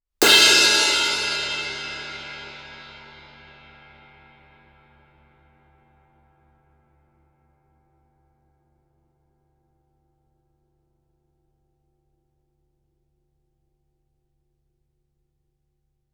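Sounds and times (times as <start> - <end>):
suspended cymbal crash with stick shoulder fortissimo: 0.2 - 4.0.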